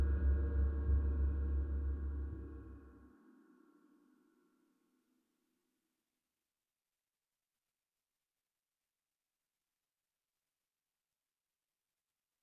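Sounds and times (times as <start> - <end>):
processed gong bath: 0.0 - 2.8.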